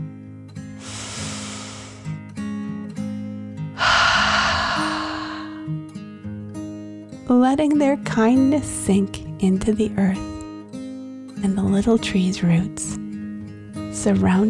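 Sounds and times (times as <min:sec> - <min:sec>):
deep breath in and out: 0:00.8 - 0:02.2, 0:03.8 - 0:05.8
speech: 0:07.3 - 0:10.3, 0:11.4 - 0:13.0, 0:14.0 - 0:14.4.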